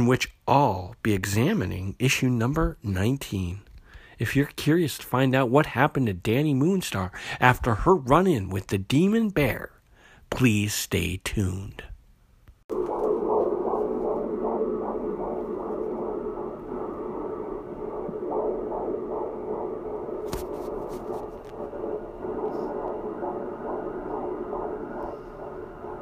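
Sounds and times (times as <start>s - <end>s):
speech: 0.0s - 11.9s
unborn baby's heartbeat at 24 weeks: 12.7s - 26.0s.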